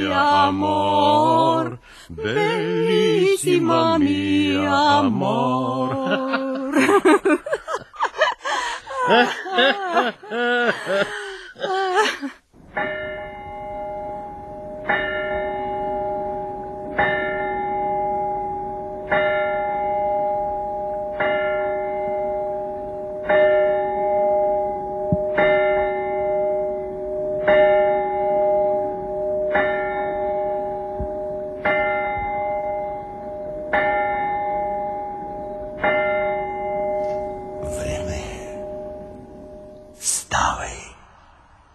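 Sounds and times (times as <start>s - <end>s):
speech: 0.0s - 7.8s, 9.1s - 11.2s
laughter: 5.7s - 12.4s
clock bell striking twelve: 12.8s - 39.8s.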